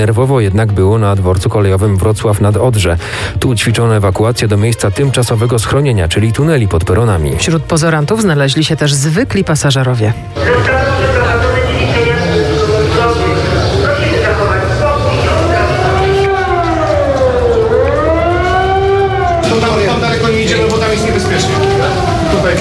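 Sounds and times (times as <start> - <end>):
speech: 0.0 - 11.3
civil defense sirens wailing across the city: 10.3 - 22.5.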